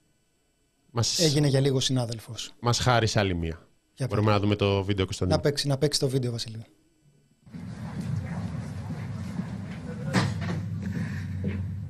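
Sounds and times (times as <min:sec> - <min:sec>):
speech: 0:00.9 - 0:06.8
door opening: 0:07.5 - 0:11.6.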